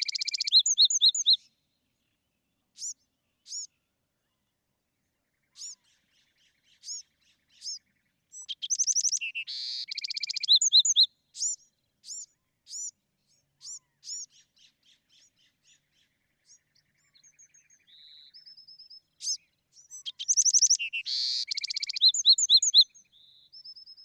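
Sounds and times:
Bewick's wren singing: 0.0s - 1.5s, 2.8s - 3.8s, 5.4s - 24.0s.

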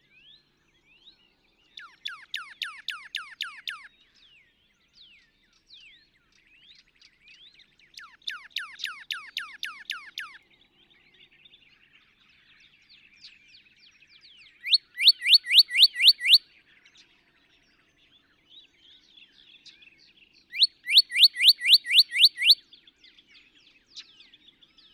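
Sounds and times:
Northern cardinal repeating sharp downslurred whistled notes: 14.7s - 16.4s, 20.6s - 22.6s.

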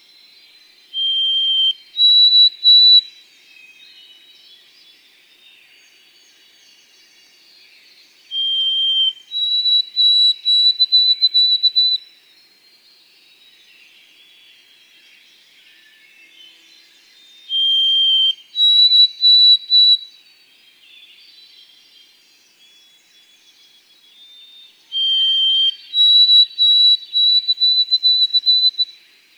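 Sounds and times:
white-throated sparrow whistled song: 1.0s - 3.0s, 8.4s - 12.0s, 17.5s - 20.1s, 24.9s - 28.9s.

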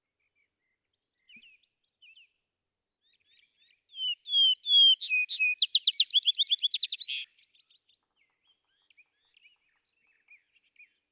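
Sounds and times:
Vesper sparrow song: 3.0s - 11.1s.

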